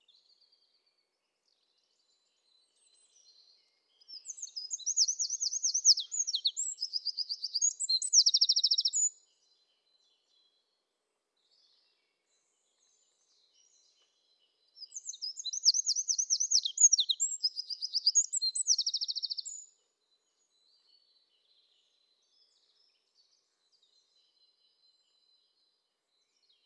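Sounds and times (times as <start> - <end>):
Eurasian wren song, Troglodytes troglodytes: 4.2 - 9.2, 14.9 - 19.7.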